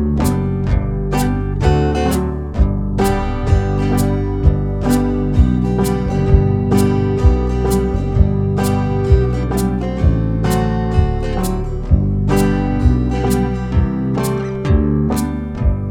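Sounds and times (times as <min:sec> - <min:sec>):
banjo backing track in the key of G: 0:00.0 - 0:15.8.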